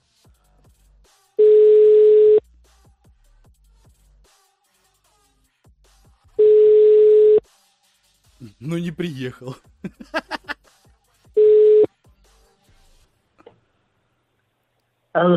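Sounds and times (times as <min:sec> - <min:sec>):
telephone ringback tone: 0:01.4 - 0:02.4, 0:06.4 - 0:07.4, 0:11.4 - 0:11.9
speech: 0:08.7 - 0:10.4, 0:15.2 - 0:15.3
laughter: 0:09.8 - 0:10.7.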